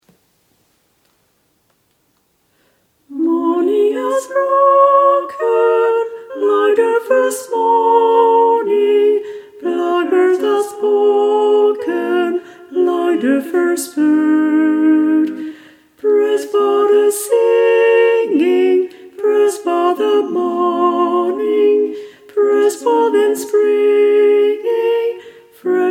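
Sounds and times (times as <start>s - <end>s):
tenor singing: 3.1s - 25.9s.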